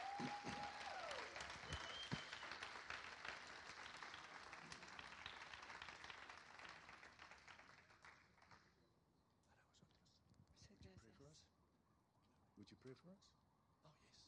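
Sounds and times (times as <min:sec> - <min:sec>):
audience applause: 0:00.0 - 0:08.7.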